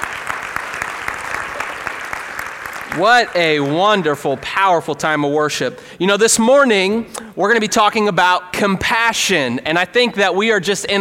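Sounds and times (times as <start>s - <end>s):
round of applause for worship team: 0.0s - 4.2s
speech: 2.9s - 10.9s.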